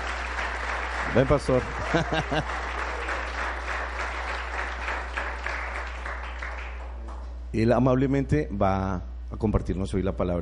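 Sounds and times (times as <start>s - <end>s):
audience applause: 0.0s - 7.3s
speech: 1.2s - 2.7s, 7.6s - 10.3s
laughter: 1.5s - 3.4s.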